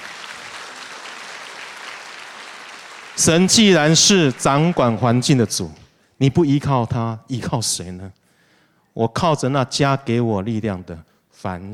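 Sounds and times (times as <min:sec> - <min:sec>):
audience applause: 0:00.0 - 0:05.3
speech: 0:03.2 - 0:08.2, 0:09.0 - 0:11.7.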